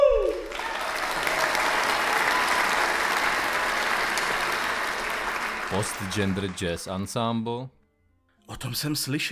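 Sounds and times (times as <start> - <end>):
audience applause: 0.2 - 7.1
speech: 5.8 - 7.8, 8.5 - 9.2.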